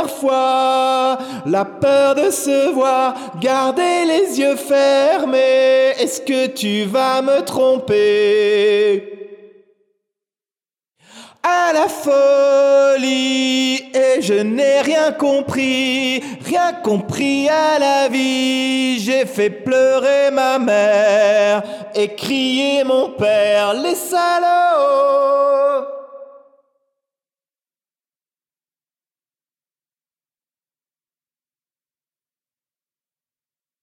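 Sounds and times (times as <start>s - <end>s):
junior a cappella song: 0.0s - 9.4s, 11.3s - 26.5s.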